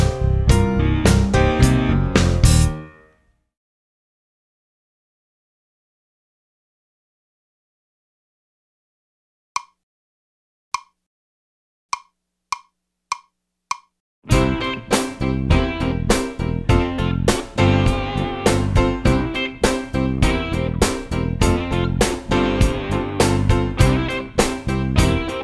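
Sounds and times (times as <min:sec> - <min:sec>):
minor blues music: 0:00.0 - 0:02.9, 0:14.3 - 0:25.4.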